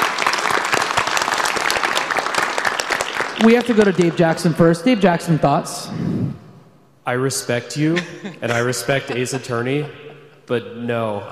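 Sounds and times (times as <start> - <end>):
audience applause: 0.0 - 4.2
speech: 3.4 - 6.2, 7.1 - 11.2
laughter: 7.7 - 11.2.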